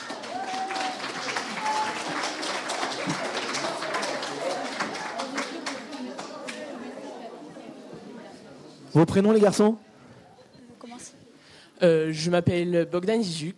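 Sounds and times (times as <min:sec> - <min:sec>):
audience applauding: 0:00.0 - 0:06.9
speech: 0:09.0 - 0:09.9, 0:11.8 - 0:13.5.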